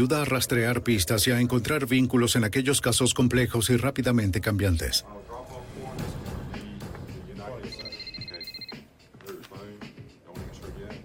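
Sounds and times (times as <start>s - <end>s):
speech: 0.0s - 5.5s
telephone ringing: 7.6s - 8.9s.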